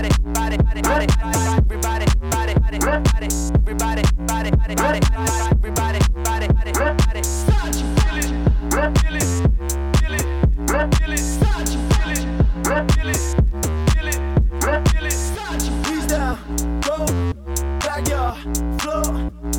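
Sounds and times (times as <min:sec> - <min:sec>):
vocal samples: 0:00.0 - 0:19.5.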